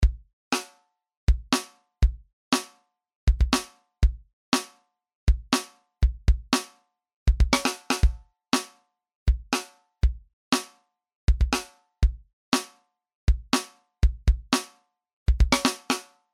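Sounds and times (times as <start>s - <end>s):
drums: 0.0s - 16.2s.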